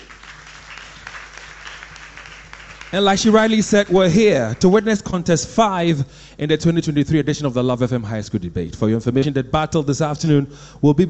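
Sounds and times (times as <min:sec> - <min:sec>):
audience applause: 0:00.0 - 0:05.0
speech: 0:02.9 - 0:11.0.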